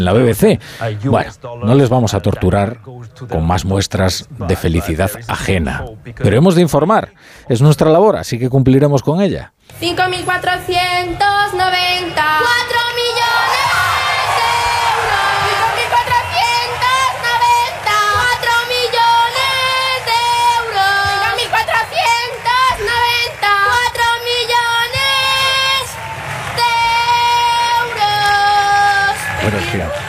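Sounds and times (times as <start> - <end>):
speech: 0.0 - 13.8
children shouting and cheering excitedly: 11.2 - 30.0.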